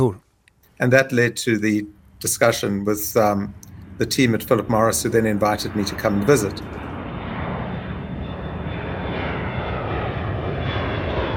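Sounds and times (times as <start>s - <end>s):
speech: 0.0s - 0.2s, 0.8s - 6.7s
airplane engine droning: 0.0s - 11.3s.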